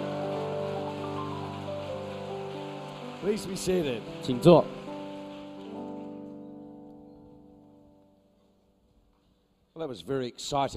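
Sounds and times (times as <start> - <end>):
audience clapping: 0.0 - 7.0
speech: 3.2 - 4.8, 9.8 - 10.7.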